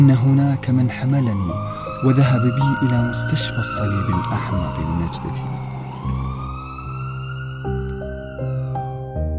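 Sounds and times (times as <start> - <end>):
speech: 0.0 - 6.2
sirens wailing: 0.0 - 9.2.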